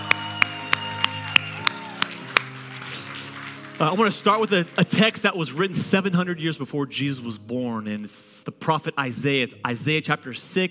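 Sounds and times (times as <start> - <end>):
audience clapping in unison: 0.0 - 5.3
speech: 3.8 - 10.6.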